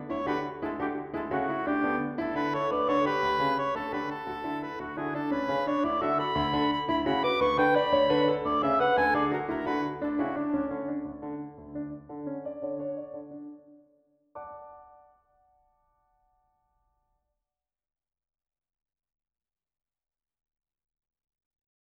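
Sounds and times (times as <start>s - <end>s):
oboe sonata: 0.0s - 12.1s.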